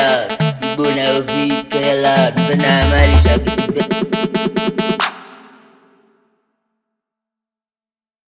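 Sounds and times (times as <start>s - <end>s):
loud Kenyan beat: 0.2s - 6.0s.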